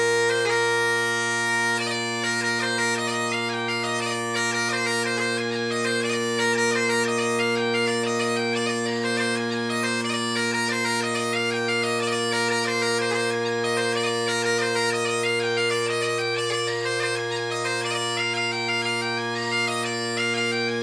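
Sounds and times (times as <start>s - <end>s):
Great Highland bagpipe with tenor reeds playing a jig: 0.0s - 20.8s.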